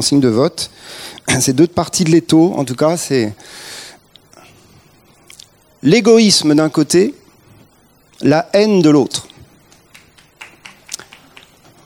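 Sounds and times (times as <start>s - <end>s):
speech: 0.0s - 3.8s, 5.8s - 7.2s, 8.2s - 9.3s
scattered audience claps: 9.7s - 11.8s.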